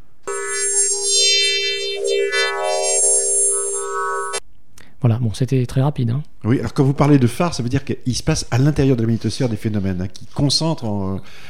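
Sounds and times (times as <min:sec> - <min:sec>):
recorded radio emissions from Jupiter: 0:00.3 - 0:04.4
speech: 0:05.0 - 0:11.4.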